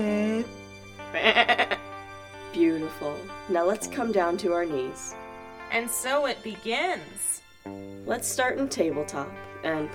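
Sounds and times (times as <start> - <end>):
goat bleating: 1.0 - 1.9
speech: 2.9 - 9.9.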